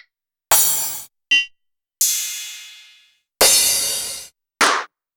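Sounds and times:
Roland SH-32 drum kit: 0.5 - 1.1, 2.0 - 4.8.

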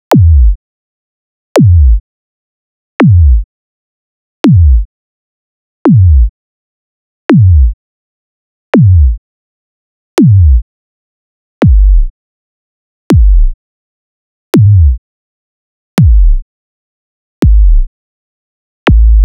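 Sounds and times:
subby kick drums: 0.1 - 0.6, 1.6 - 2.0, 3.0 - 3.4, 4.4 - 4.9, 5.9 - 6.3, 7.3 - 7.8, 8.8 - 9.2, 10.2 - 10.6, 11.6 - 12.1, 13.1 - 13.6, 14.6 - 15.0, 16.0 - 16.4, 17.4 - 17.9, 18.9 - 19.2.

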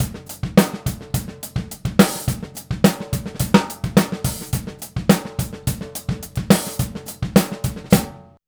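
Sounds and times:
straight drum kit world pop beat: 0.0 - 8.4.

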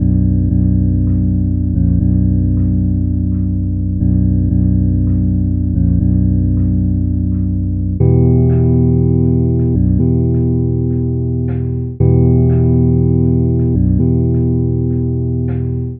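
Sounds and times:
bass bell strum: 0.0 - 15.9.

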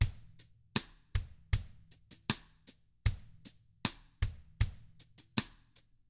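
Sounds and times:
country drums: 0.0 - 5.6.

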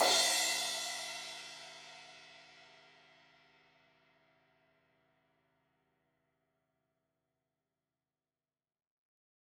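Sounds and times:
16-inch crash cymbal hit on the edge: 0.0 - 1.9.

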